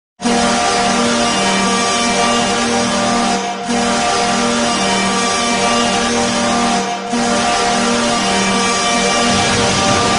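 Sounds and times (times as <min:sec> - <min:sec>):
hockey goal horn: 0:00.2 - 0:10.1.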